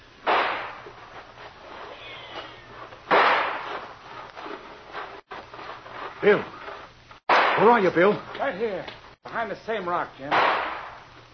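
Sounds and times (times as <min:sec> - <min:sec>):
gunshots fired as a signal to charge: 0:00.2 - 0:00.8, 0:03.1 - 0:03.8, 0:07.3 - 0:07.9, 0:10.3 - 0:11.0
speech: 0:06.2 - 0:06.6, 0:07.6 - 0:10.6.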